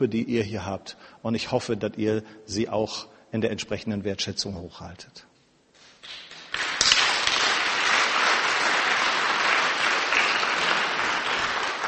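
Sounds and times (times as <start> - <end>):
speech: 0.0 - 5.3
audience applause: 6.3 - 11.8.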